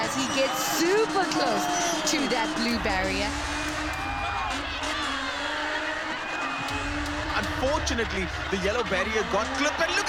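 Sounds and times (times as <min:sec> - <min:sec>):
crowd cheering at a drift event: 0:00.0 - 0:10.0
speech: 0:00.1 - 0:03.6, 0:07.4 - 0:10.0.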